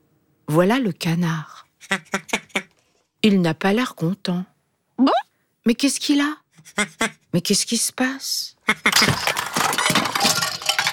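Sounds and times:
speech: 0.5s - 2.3s, 3.2s - 9.4s
objects knocked over and falling, clattering: 8.9s - 10.9s.

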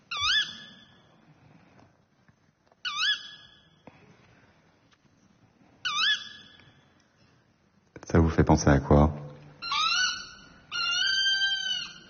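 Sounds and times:
tawny owl hooting: 0.0s - 1.1s, 2.8s - 3.8s, 5.8s - 6.8s, 9.6s - 12.0s
speech: 8.4s - 9.2s.

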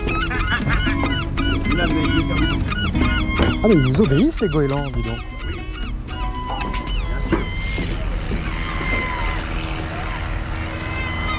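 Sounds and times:
laughter: 0.0s - 11.3s
small airplanes flying overhead: 0.0s - 11.3s
speech: 3.6s - 5.4s.

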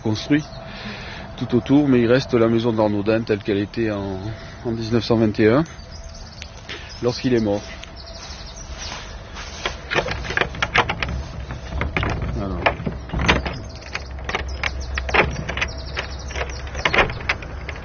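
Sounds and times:
speech: 0.0s - 0.6s, 1.4s - 5.8s, 7.0s - 7.8s
old Gascon door lock on a 1921 historic house opened the reverse way: 9.9s - 17.8s.

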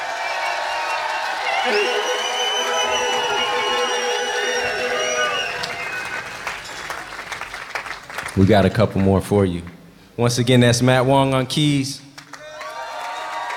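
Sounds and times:
high-pitched shouts and whistles: 0.0s - 7.2s
concert crowd cheering and clapping: 0.0s - 8.5s, 12.2s - 13.5s
speech: 1.6s - 2.1s, 8.4s - 12.0s.

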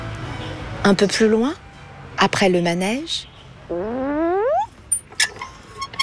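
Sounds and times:
speech: 0.9s - 3.8s
playground swing creaking: 3.7s - 6.0s.

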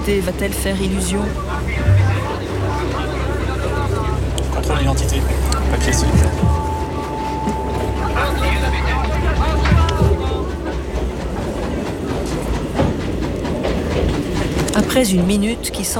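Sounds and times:
speech: 0.0s - 2.0s, 4.6s - 6.6s, 14.8s - 15.9s
faint indistinct voices murmuring: 0.0s - 15.9s
train rolling on rails: 0.0s - 15.9s.

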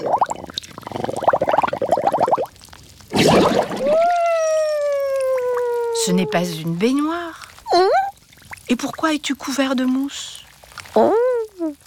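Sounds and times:
water gurgling as it drains from a bathroom sink: 0.0s - 9.1s
water splashing in a bathroom sink: 0.0s - 10.9s
speech: 6.1s - 7.4s, 8.7s - 10.4s.

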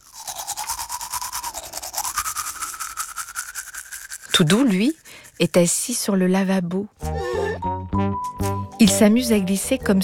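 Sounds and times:
toothbrush scrubbing teeth at bedtime: 0.0s - 6.2s, 8.3s - 9.5s
speech: 4.4s - 7.7s, 8.8s - 10.0s.

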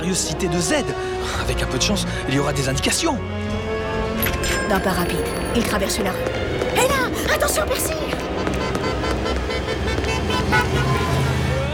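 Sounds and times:
speech: 0.1s - 3.6s, 4.7s - 8.2s
dense street traffic rumbling: 6.2s - 11.7s
bus horn honking: 8.2s - 11.6s.

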